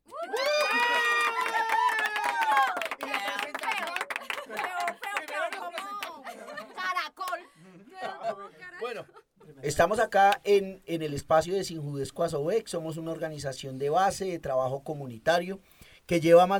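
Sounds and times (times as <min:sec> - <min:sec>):
audience cheering: 0:00.0 - 0:06.2
laughter: 0:03.2 - 0:09.8
speech: 0:09.6 - 0:16.5.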